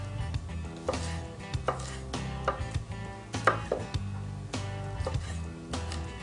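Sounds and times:
steady music: 0:00.0 - 0:06.2
knife mincing garlic on a cutting board: 0:00.8 - 0:04.0, 0:05.0 - 0:06.1.

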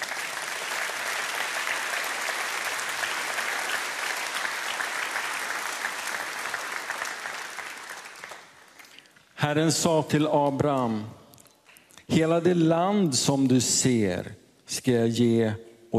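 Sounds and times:
audience applause: 0:00.0 - 0:09.1
speech: 0:09.4 - 0:11.2, 0:12.2 - 0:15.7.

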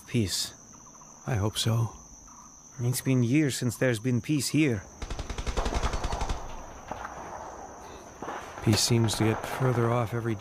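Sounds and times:
speech: 0:00.1 - 0:00.6, 0:01.2 - 0:02.0, 0:02.8 - 0:05.1, 0:08.7 - 0:10.3
distant gunfire near a village by a river during a guerrilla conflict: 0:05.0 - 0:09.7.

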